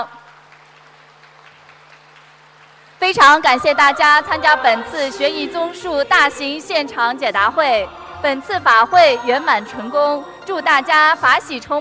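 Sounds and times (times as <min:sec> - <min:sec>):
audience applause at a large live dharma assembly: 0:00.0 - 0:03.0
speech: 0:03.0 - 0:11.7.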